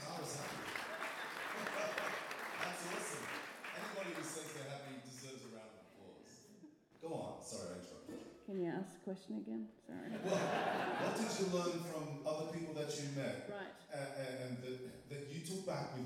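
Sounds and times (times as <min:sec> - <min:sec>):
audience applause: 0:00.0 - 0:05.6
laughter: 0:00.0 - 0:06.2, 0:10.0 - 0:16.0
speech: 0:04.0 - 0:06.4, 0:07.0 - 0:16.0.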